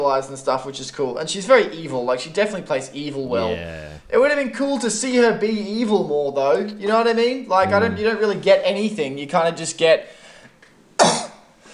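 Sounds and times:
speech: 0:00.0 - 0:10.2
person sneezing: 0:03.4 - 0:04.0.

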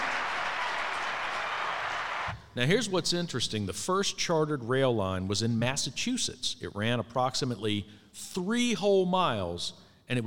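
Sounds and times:
audience applause: 0:00.0 - 0:02.3
speech: 0:02.6 - 0:10.2.

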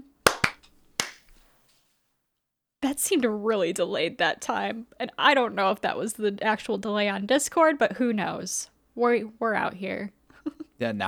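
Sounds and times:
single hand clap for audio sync: 0:00.3 - 0:01.5
speech: 0:02.9 - 0:11.0.

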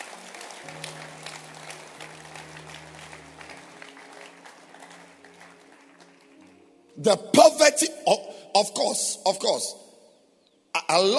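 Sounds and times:
audience clapping hands: 0:00.0 - 0:06.8
speech: 0:07.0 - 0:09.8, 0:10.9 - 0:11.1.

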